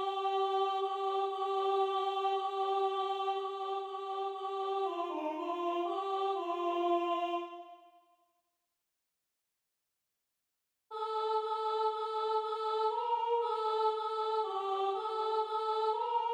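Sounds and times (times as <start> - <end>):
soprano singing: 0.0 - 7.6, 10.9 - 16.3.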